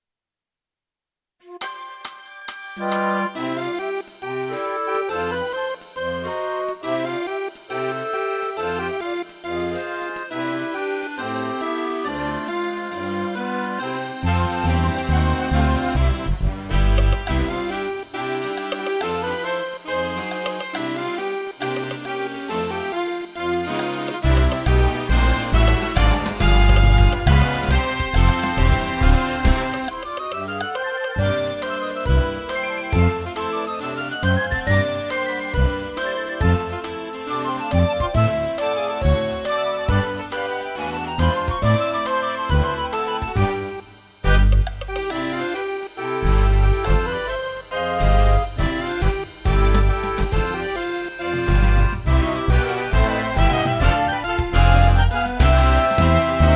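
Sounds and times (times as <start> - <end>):
accordion playing tutti: 1.5 - 56.5.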